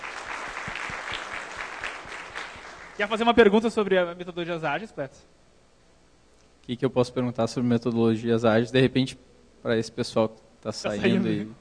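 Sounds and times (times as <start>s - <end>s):
audience applauding at a talk on agile methodologies: 0.0s - 3.0s
speech: 3.0s - 5.4s, 6.7s - 11.5s.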